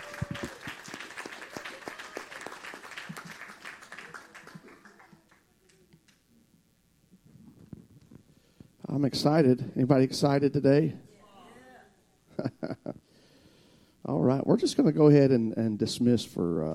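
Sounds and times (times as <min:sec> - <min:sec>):
audience hand clapping: 0:00.0 - 0:06.2
speech: 0:09.0 - 0:11.0, 0:14.6 - 0:16.7.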